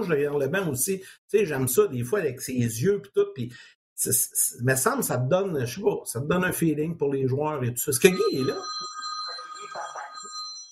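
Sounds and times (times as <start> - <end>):
speech: 0.0 - 9.0
mobile phone ringing: 8.1 - 10.7.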